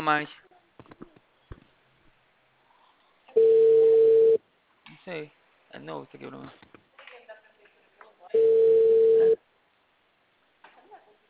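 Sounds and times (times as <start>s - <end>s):
speech: 0.0s - 0.4s, 5.0s - 6.8s
ringback tone on an unanswered telephone call: 3.4s - 4.4s, 8.4s - 9.4s.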